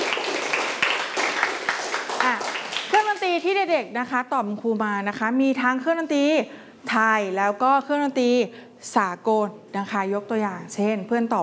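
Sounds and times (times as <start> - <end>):
children clapping during a classroom music lesson: 0.0 - 3.4
speech: 3.4 - 11.4.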